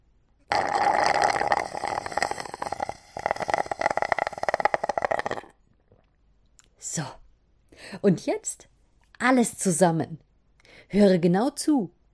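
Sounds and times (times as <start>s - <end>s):
slurping last water through a straw: 0.5s - 6.2s
speech: 7.0s - 7.2s, 7.9s - 10.2s, 10.9s - 12.0s.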